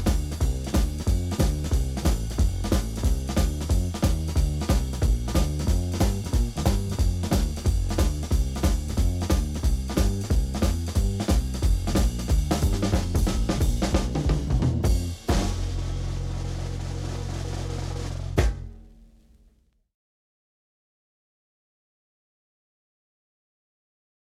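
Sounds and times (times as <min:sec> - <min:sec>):
boogie bass line: 0:00.0 - 0:18.9
drums: 0:00.0 - 0:19.7.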